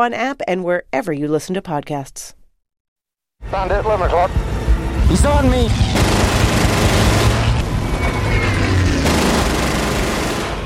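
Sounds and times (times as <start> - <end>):
speech: 0.0 - 2.4, 3.4 - 7.1
heavy low rumble: 3.4 - 10.4
battlefield gunfire from a war film: 5.9 - 7.6, 9.0 - 10.6.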